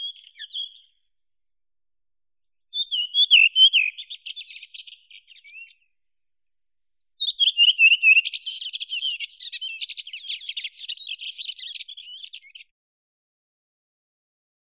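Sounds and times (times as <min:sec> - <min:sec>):
redwing Turdus iliacus calling: 0:00.0 - 0:00.9, 0:02.7 - 0:05.8, 0:07.2 - 0:12.6.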